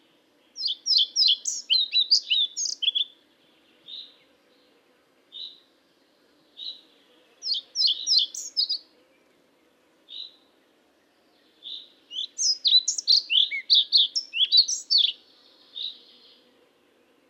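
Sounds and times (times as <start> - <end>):
Ficedula hypoleuca calling: 0.6 - 3.1, 7.4 - 8.8, 11.7 - 15.2.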